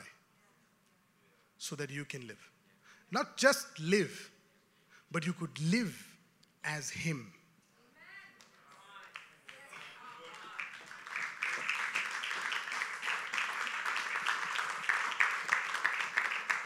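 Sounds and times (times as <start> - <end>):
speech: 1.6 - 4.3, 5.1 - 7.4
audience clapping: 8.4 - 16.6.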